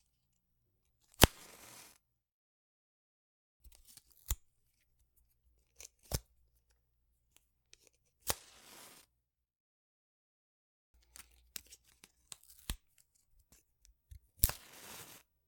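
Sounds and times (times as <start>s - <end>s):
household match striking: 1.2s - 2.0s, 8.3s - 9.1s, 14.4s - 15.3s.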